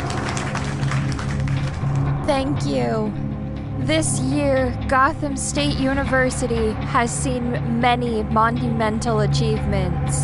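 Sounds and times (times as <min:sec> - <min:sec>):
crowd applauding: 0:00.0 - 0:02.2
speech: 0:02.3 - 0:03.2, 0:03.8 - 0:10.2.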